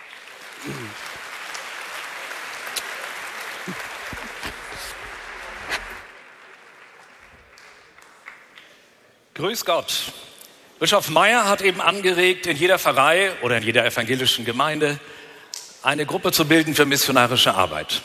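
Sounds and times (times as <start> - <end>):
audience applause: 0.0 - 8.6
speech: 0.6 - 1.3, 3.7 - 3.9, 9.4 - 15.2, 15.8 - 18.0.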